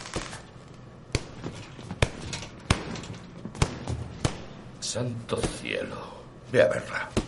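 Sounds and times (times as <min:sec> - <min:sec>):
boxer punching a heavy bag in a boxing gym: 0:01.1 - 0:04.6
speech: 0:04.9 - 0:07.2.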